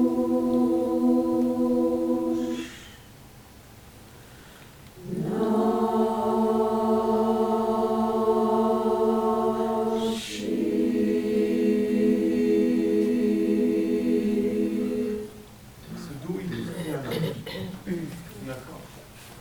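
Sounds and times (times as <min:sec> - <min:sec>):
sopranos mezzos and altos singing in Russian style: 0:00.0 - 0:03.0, 0:05.0 - 0:15.6
laughter: 0:16.4 - 0:17.9.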